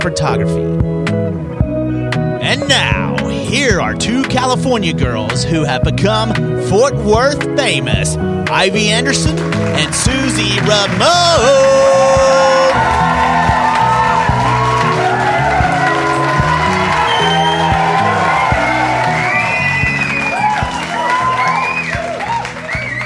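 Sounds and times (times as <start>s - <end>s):
speech: 0.0s - 1.6s, 2.4s - 12.9s
crowd applause: 8.9s - 23.0s.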